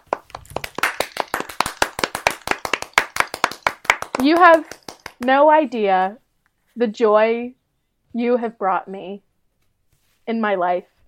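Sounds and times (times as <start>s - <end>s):
round of applause: 0.0s - 5.3s
speech: 4.2s - 6.2s, 6.8s - 9.3s, 10.3s - 10.9s.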